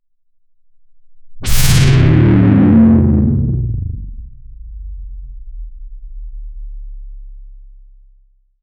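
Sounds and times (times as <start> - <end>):
futuristic propulsion engine: 1.4 - 4.8.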